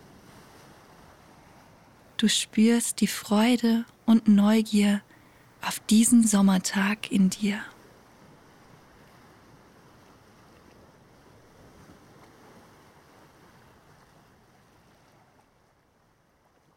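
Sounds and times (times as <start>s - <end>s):
waves breaking on a beach: 0.0s - 2.1s, 8.0s - 15.6s
speech: 2.2s - 7.7s.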